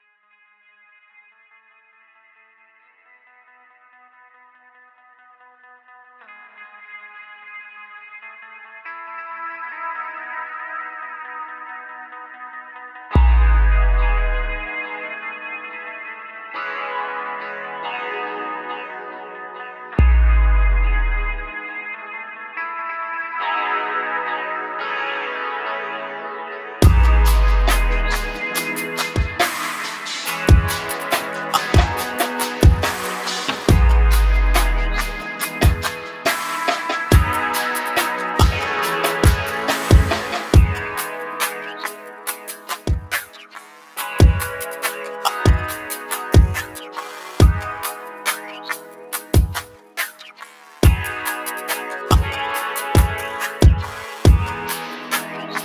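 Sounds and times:
chill music at 70 BPM: 13.2 - 55.6.

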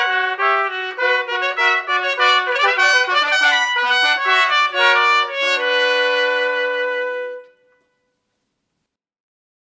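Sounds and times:
orchestral suite: 0.0 - 7.7.

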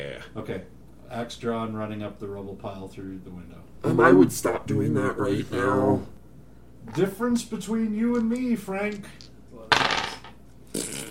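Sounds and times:
speech: 0.2 - 6.2, 6.8 - 9.3
dice rolling on a table: 8.1 - 10.4.

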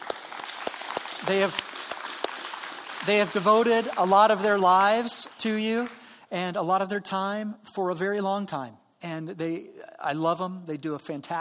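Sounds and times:
audience applause: 0.0 - 6.0
speech: 1.2 - 1.7, 3.0 - 11.3.

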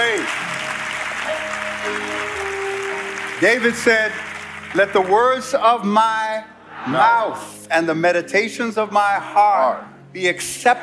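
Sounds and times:
audience clapping hands: 0.0 - 5.6
speech: 3.4 - 10.8.

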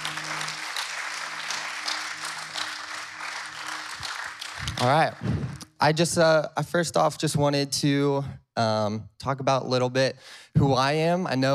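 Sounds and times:
applause: 0.0 - 5.7
speech: 4.8 - 11.5.

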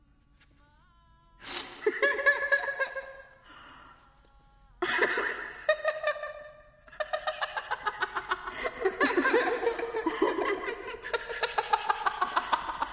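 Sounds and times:
people laughing in meditation: 1.8 - 3.4, 4.8 - 12.9.

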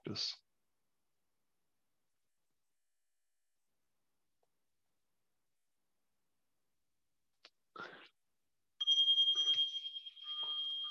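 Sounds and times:
Zen meditation bell ringing: 8.8 - 10.8.

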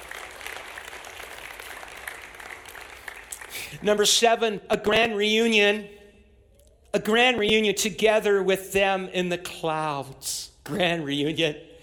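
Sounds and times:
audience clapping in praise: 0.0 - 4.0
speech: 3.7 - 6.0, 6.9 - 11.7.

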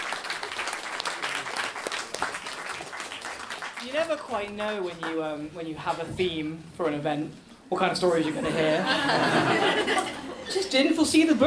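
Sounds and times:
crowd applauding: 0.0 - 5.2
speech: 3.9 - 11.4
laughter: 8.2 - 10.8.

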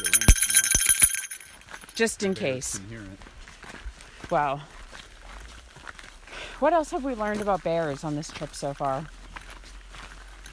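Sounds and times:
small bear bell jingling in a national park: 0.0 - 2.4
speech: 2.0 - 3.3, 4.3 - 4.8, 6.6 - 9.2.

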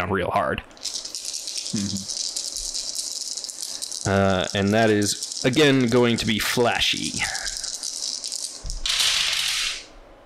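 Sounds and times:
speech: 0.0 - 1.0, 1.7 - 2.2, 4.0 - 7.6
dice rattling in a cup: 0.7 - 9.9.

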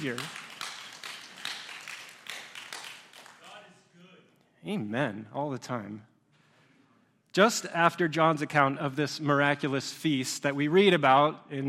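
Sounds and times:
speech: 0.0 - 0.4, 4.6 - 6.1, 7.4 - 11.6
audience clapping: 0.0 - 3.8.

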